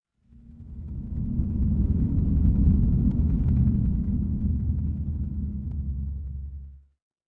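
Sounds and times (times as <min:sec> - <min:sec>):
dark horror ambience: 0:00.3 - 0:06.8.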